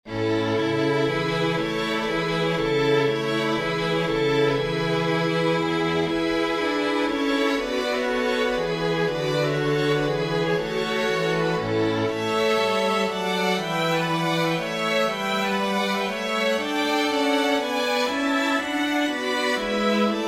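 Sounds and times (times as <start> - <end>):
chorus for winds and strings: 0.0 - 20.2.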